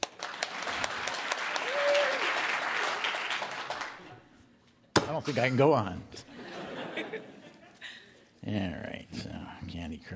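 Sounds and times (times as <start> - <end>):
audience applause: 0.0 - 4.1
speech: 5.2 - 6.3, 8.4 - 10.1
laughter: 6.3 - 8.1.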